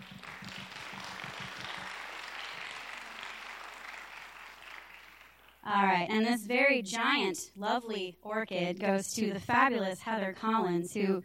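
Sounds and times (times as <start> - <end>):
audience applause: 0.0 - 5.6
speech: 5.7 - 11.2.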